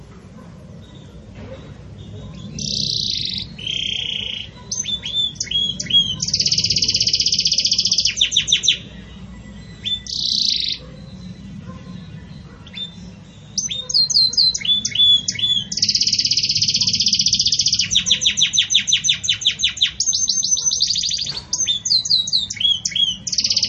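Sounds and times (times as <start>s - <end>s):
Belgian canary trilling: 0.0s - 23.6s.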